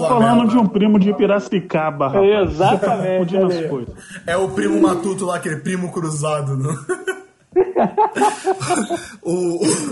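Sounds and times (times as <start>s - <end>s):
speech: 0.0s - 7.1s, 7.8s - 9.9s
laughter: 6.6s - 9.9s
person coughing: 8.6s - 9.9s.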